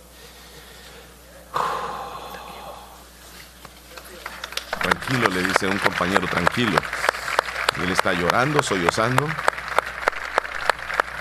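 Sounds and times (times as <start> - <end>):
audience applauding: 3.9 - 11.2
speech: 4.8 - 7.1, 7.8 - 9.5.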